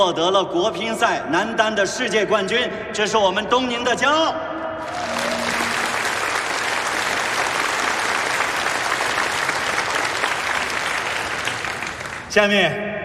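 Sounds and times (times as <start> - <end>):
speech: 0.0 - 4.9, 12.4 - 13.0
sustained applause from a large crowd: 4.8 - 12.3.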